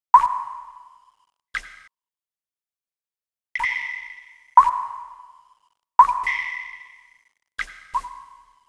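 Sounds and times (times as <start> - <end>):
water drops: 0.2 - 0.8, 3.6 - 5.2, 6.0 - 8.5.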